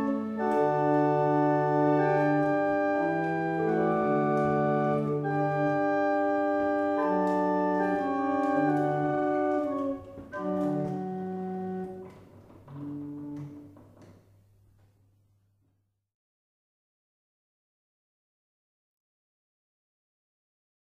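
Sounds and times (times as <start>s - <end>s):
barrel organ playing a double chant: 0.0s - 13.7s.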